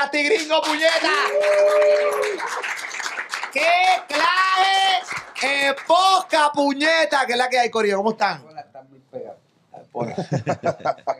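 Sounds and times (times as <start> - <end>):
speech: 0.0 - 2.8, 3.6 - 11.1
audience applause: 0.4 - 6.4
laughter: 10.0 - 11.1.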